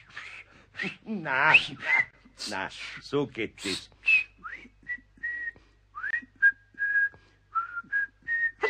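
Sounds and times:
speech: 0.8s - 4.0s
person whistling: 4.0s - 8.6s.

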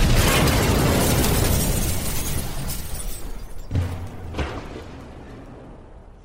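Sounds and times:
heavy clanging object falling with a crash: 0.0s - 4.8s.

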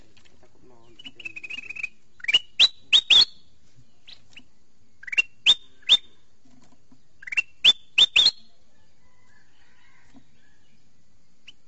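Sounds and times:
sooty-headed bulbul calling: 0.0s - 6.3s, 6.9s - 8.9s.

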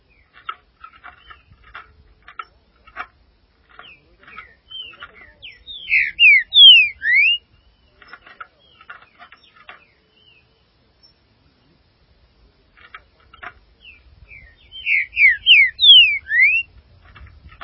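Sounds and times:
soft ticking and chattering calls: 0.0s - 11.7s, 12.4s - 17.6s
green-winged saltator whistled song: 4.7s - 7.4s, 14.7s - 16.7s.

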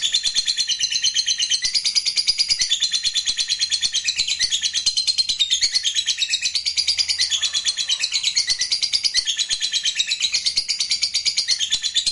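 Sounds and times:
lovebird chattering: 0.0s - 12.0s.

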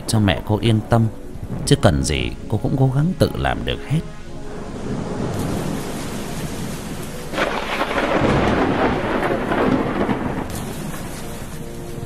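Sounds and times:
heavy rain: 0.0s - 12.0s
speech: 0.1s - 4.2s
thunder: 4.9s - 11.6s.

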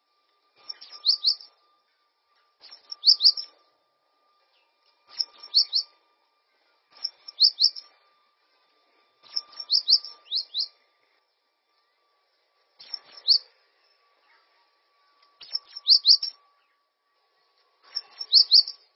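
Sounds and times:
bird song of fast high chirps and trills: 0.6s - 1.6s, 2.3s - 3.8s, 4.4s - 6.1s, 6.9s - 8.0s, 9.2s - 10.9s, 12.8s - 16.9s, 17.8s - 18.9s.

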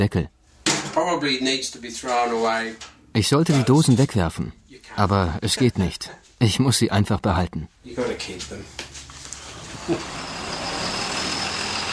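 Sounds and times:
speech: 0.0s - 0.4s, 1.0s - 8.8s, 9.8s - 10.2s
bus driving: 9.4s - 11.9s.

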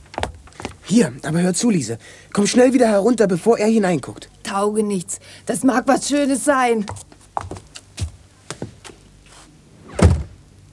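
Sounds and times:
speech: 0.9s - 7.5s
door creaking open: 9.8s - 10.4s
notebook thrown onto chair: 9.9s - 10.4s.

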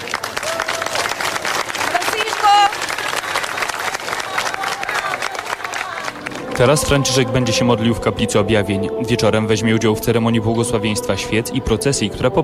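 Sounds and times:
crowd of pilgrims cheering and applauding: 0.0s - 7.5s
speech: 6.6s - 12.4s.

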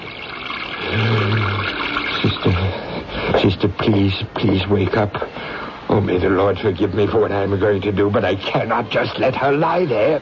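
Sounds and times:
water pouring in a steady rushing stream: 0.0s - 4.6s
speech: 2.4s - 10.1s.

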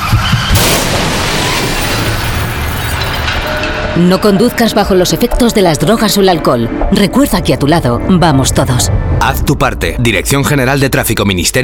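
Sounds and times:
harsh noisy debris and rumble: 0.0s - 5.5s
loud car crash: 0.1s - 4.0s
speech: 4.0s - 11.6s.

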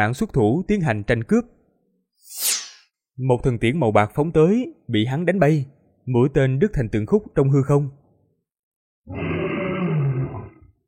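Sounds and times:
speech: 0.0s - 1.6s, 2.2s - 2.5s, 3.2s - 8.0s, 9.0s - 9.4s
fierce beasts roaring: 9.1s - 10.8s.

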